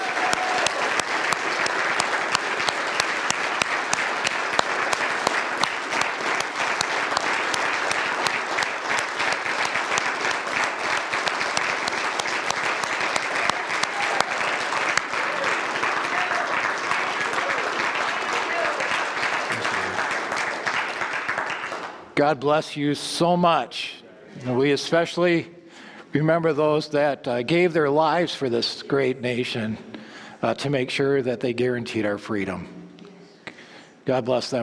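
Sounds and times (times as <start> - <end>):
audience applause for military veterans: 0.0 - 22.0
speech: 22.2 - 32.8, 34.1 - 34.6.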